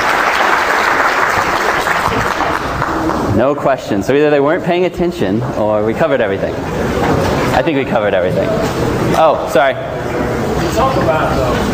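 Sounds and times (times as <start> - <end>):
applause: 0.0 - 3.3
speech: 3.4 - 10.2, 10.8 - 11.7.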